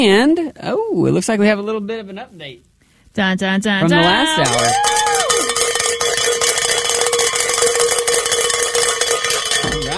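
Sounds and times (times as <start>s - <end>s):
speech: 0.0s - 5.1s
bell rung for a pledge goal: 4.4s - 9.9s.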